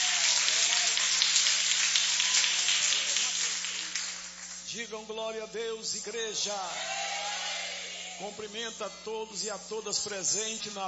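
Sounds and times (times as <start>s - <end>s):
audience applauding: 0.0s - 4.7s
speech: 4.7s - 7.1s, 8.2s - 10.8s.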